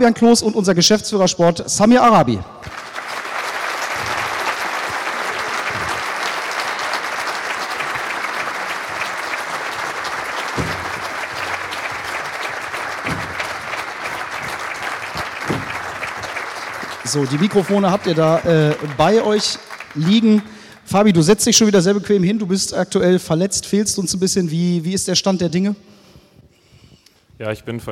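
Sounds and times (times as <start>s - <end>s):
speech: 0.0s - 2.8s, 17.2s - 26.0s, 27.4s - 27.8s
audience applause welcoming guests on stage: 2.6s - 21.3s.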